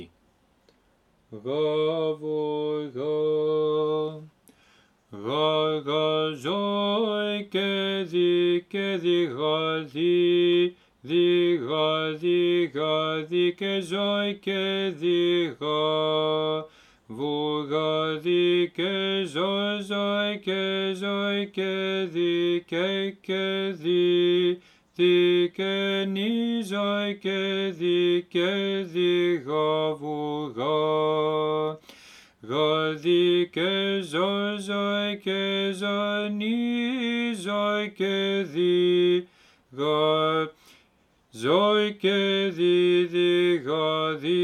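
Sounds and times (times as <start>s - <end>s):
resurrectional dismissal hymn in grave mode: 1.3s - 4.3s, 5.1s - 44.4s.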